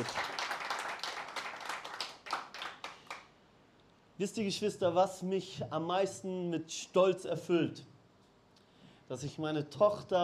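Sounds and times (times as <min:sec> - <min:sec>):
speech: 0:00.0 - 0:00.2, 0:04.2 - 0:07.9, 0:09.1 - 0:10.2
audience applause: 0:00.0 - 0:03.2.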